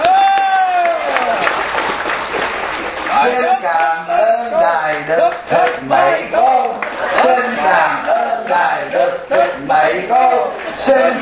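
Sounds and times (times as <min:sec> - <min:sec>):
audience applauding at a Vietnamese Buddhist farewell gathering for a venerable monk: 0:00.0 - 0:08.6
speech: 0:09.2 - 0:11.2.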